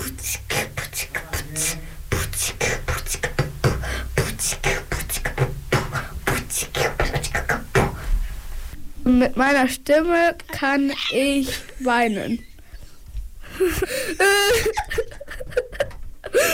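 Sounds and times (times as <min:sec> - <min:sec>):
person beatboxing: 0:00.0 - 0:08.1
speech: 0:09.1 - 0:12.5
laughter: 0:13.6 - 0:16.5.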